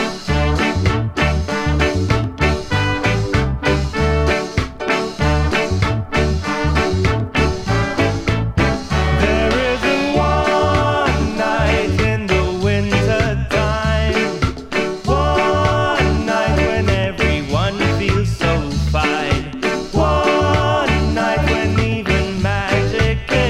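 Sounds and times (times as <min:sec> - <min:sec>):
Christmas ska music: 0:00.0 - 0:23.4.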